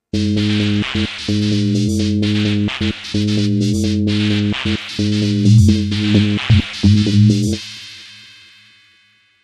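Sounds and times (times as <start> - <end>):
FM synthesizer sequence: 0.2 - 7.6.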